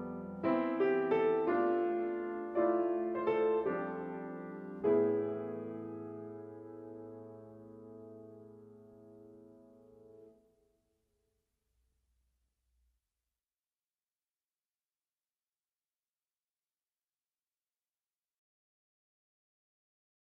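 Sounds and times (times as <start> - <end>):
piano prelude: 0.0 - 10.4.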